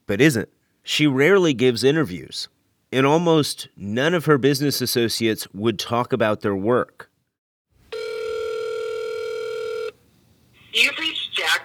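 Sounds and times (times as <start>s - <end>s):
speech: 0.1s - 7.0s, 10.8s - 11.1s
electronic telephone ring tone: 7.9s - 10.0s.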